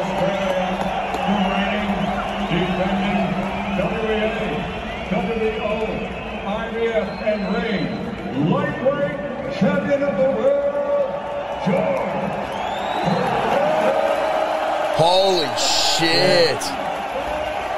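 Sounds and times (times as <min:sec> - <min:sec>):
arena crowd cheering: 0:00.0 - 0:06.8, 0:10.4 - 0:17.7
speech: 0:06.8 - 0:10.7, 0:11.6 - 0:12.1, 0:15.0 - 0:16.8.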